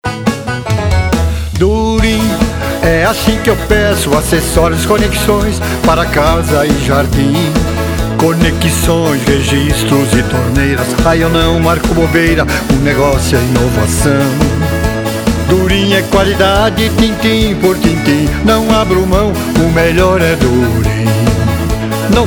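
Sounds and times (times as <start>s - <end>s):
country jingle: 0.0s - 22.2s.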